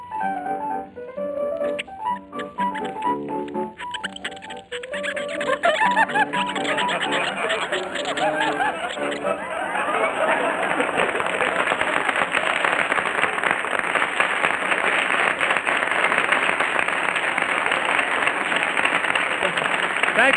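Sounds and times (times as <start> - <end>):
squeaky warbling tune played on a toe: 1.6 - 10.6
laughter: 3.8 - 20.3.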